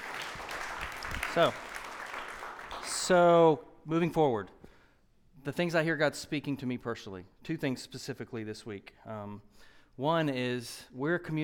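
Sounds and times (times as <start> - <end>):
audience clapping: 0.0 - 3.3
speech: 1.3 - 1.7, 3.1 - 4.6, 5.4 - 11.4.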